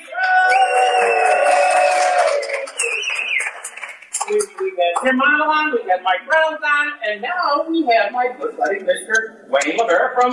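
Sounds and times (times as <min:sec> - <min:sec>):
high sustained whoops: 0:00.1 - 0:03.5
live audience cheering at a show: 0:00.1 - 0:03.8
scattered clapping: 0:00.8 - 0:04.8
speech: 0:05.0 - 0:10.3.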